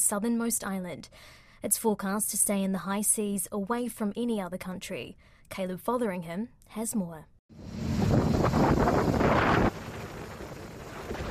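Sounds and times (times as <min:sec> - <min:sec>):
speech: 0:00.1 - 0:09.7
Cyclone Mal winds thrashing Nundi, Fiji at night: 0:07.6 - 0:11.2.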